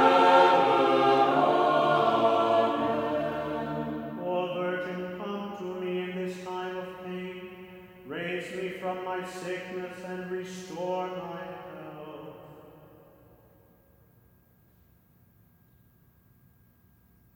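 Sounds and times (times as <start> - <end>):
canon ode chant: 0.0 - 13.3.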